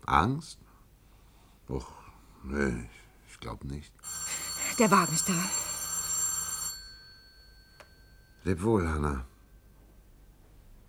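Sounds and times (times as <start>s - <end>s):
speech: 0.1s - 0.6s, 1.7s - 4.2s, 4.8s - 5.6s, 8.4s - 9.3s
telephone ringing: 4.0s - 9.2s.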